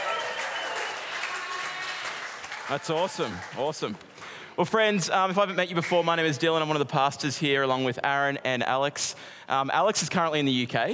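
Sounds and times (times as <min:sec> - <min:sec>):
crowd clapping: 0:00.0 - 0:04.3
speech: 0:02.7 - 0:10.9.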